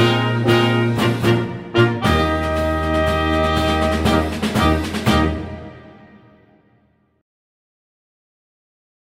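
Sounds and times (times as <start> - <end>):
brass march: 0.0 - 6.7.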